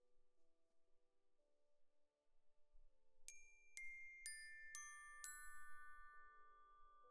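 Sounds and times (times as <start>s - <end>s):
glockenspiel: 3.3s - 7.0s.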